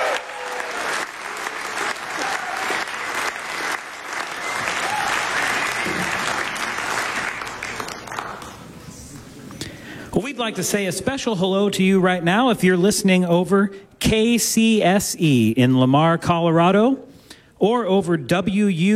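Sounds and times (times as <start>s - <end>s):
audience applause: 0.0s - 8.8s
speech: 10.4s - 18.9s.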